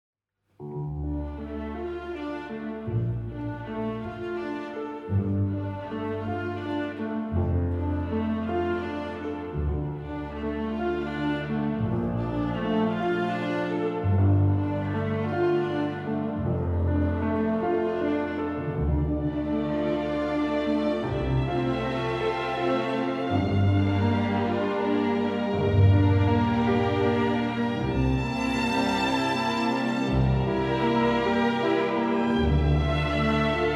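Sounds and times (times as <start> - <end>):
instrumental music: 0.6 - 33.7.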